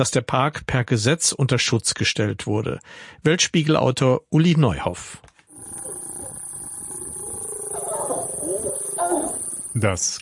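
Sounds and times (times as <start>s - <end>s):
speech: 0.0s - 5.2s, 9.8s - 10.1s
lions growling and snarling while mating: 5.5s - 9.8s.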